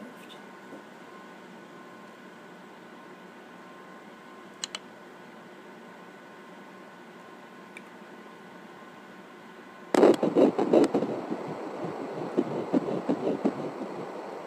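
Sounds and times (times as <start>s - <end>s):
baby beat: 10.0s - 14.1s.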